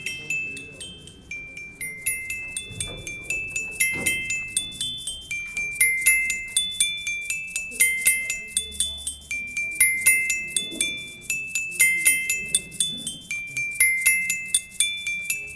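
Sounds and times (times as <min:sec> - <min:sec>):
xylophone monome Arduino: 0:00.0 - 0:15.5.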